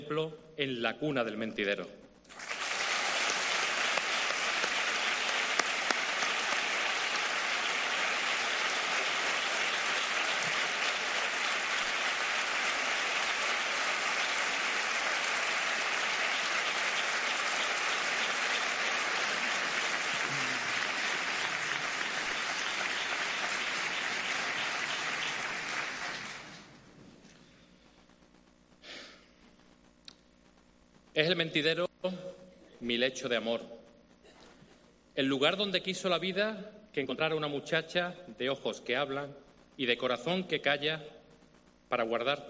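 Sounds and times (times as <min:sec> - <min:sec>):
speech: 0:00.1 - 0:02.4, 0:31.3 - 0:32.2, 0:32.9 - 0:33.8, 0:35.2 - 0:41.2, 0:41.9 - 0:42.4
theatre audience applauding: 0:02.3 - 0:26.8.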